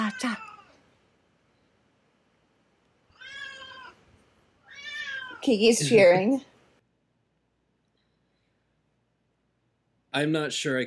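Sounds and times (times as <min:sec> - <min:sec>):
cat meowing: 0:00.0 - 0:00.8, 0:03.1 - 0:04.0, 0:04.6 - 0:05.5
speech: 0:05.5 - 0:06.5, 0:10.2 - 0:10.8.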